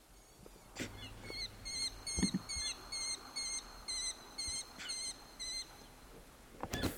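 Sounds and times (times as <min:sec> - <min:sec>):
American Kestrel calls: 0:00.8 - 0:05.8.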